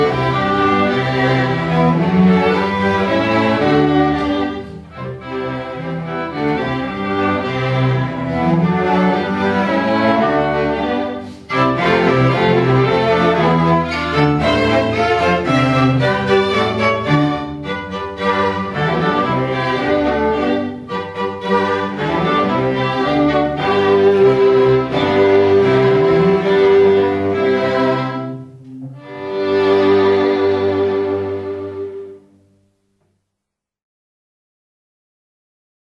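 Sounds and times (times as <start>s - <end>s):
string ensemble: 0.0s - 32.6s.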